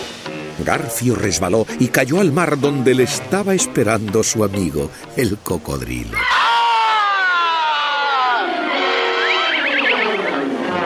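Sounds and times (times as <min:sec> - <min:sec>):
speech: 0:00.6 - 0:06.5
children cheering for new captain: 0:06.2 - 0:10.7.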